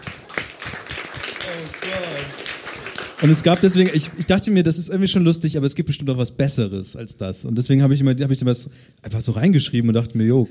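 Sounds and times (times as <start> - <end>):
short applause: 0.0 - 4.3
speech: 1.5 - 2.4, 3.2 - 10.4.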